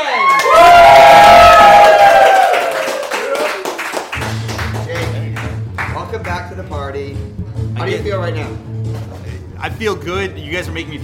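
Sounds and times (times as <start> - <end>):
live audience cheering, whooping and clapping: 0.0 - 6.0
speech: 9.7 - 11.0.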